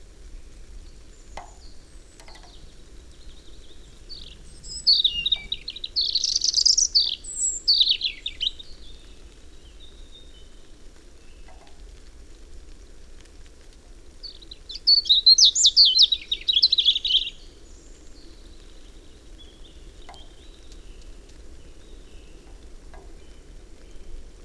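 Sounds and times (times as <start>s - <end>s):
European robin trilling song: 1.2s - 10.6s, 14.2s - 24.1s.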